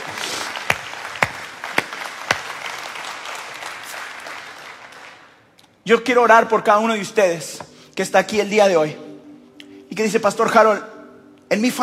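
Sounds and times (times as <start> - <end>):
audience applause: 0.0 - 5.4
speech: 5.8 - 9.0, 9.9 - 10.9, 11.5 - 11.8.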